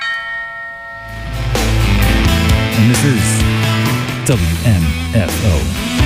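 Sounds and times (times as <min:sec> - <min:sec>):
doorbell chime played as a radio sound effect: 0:00.0 - 0:01.7
deep rumbling swell: 0:01.0 - 0:04.2
speech: 0:03.0 - 0:03.4, 0:04.3 - 0:05.9.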